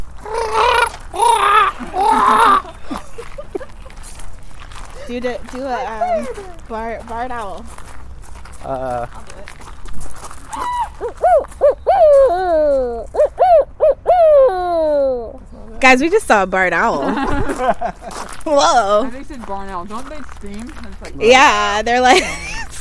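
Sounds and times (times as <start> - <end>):
human voice imitating blue heron squawks: 0.2 - 2.7, 10.5 - 15.4
laughter: 1.2 - 4.1, 17.0 - 18.5, 22.0 - 22.7
speech: 5.1 - 7.8, 8.6 - 9.4, 15.8 - 22.4.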